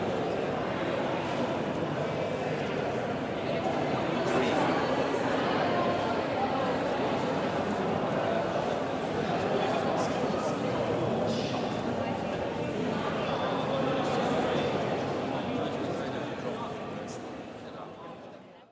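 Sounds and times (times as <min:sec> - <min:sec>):
museum crowd in Italy: 0:00.0 - 0:18.7.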